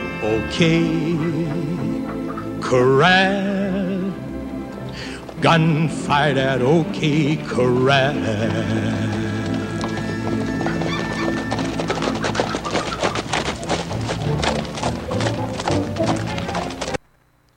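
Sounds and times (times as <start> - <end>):
speech: 0.2 - 1.9, 2.7 - 3.7, 5.4 - 9.2
horse hooves clip-clopping: 4.7 - 17.0.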